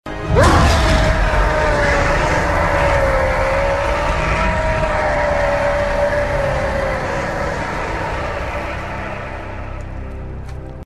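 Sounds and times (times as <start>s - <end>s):
roar: 0.2s - 9.9s.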